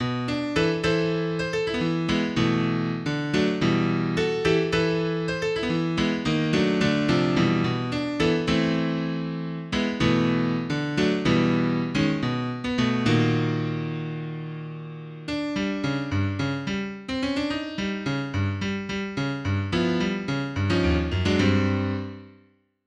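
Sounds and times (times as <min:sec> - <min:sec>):
piano: 0:00.0 - 0:22.6.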